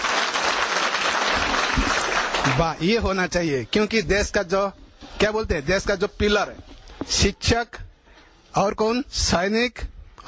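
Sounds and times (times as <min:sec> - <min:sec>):
audience clapping for teachers: 0:00.0 - 0:03.0
speech: 0:02.6 - 0:07.8, 0:08.5 - 0:10.2.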